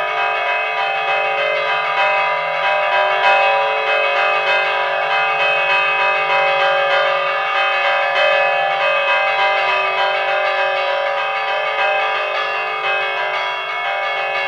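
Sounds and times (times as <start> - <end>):
festive peal of church bells: 0.0 - 14.4.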